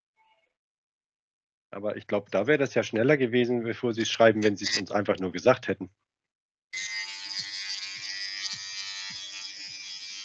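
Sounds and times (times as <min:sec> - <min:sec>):
speech: 0:01.7 - 0:06.1
electric shaver buzzing: 0:06.8 - 0:10.2.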